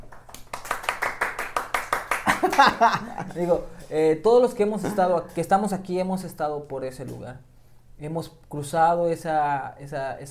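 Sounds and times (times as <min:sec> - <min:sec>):
studio audience clapping: 0:00.0 - 0:03.2
laughter: 0:02.2 - 0:03.5
speech: 0:02.5 - 0:10.3.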